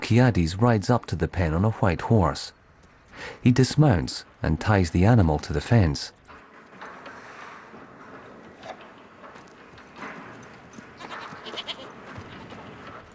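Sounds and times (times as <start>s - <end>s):
speech: 0.1s - 2.6s, 3.2s - 6.2s
goats bleating in a pen: 11.0s - 12.8s.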